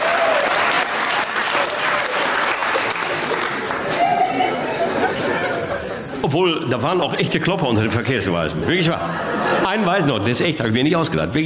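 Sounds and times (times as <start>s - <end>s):
audience applause: 0.0s - 5.6s
laughter: 2.9s - 7.0s, 8.0s - 10.9s
speech: 6.2s - 11.4s.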